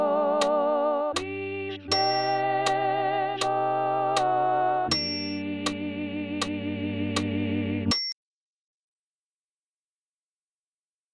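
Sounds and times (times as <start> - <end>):
alto voice: 0.0 - 7.9.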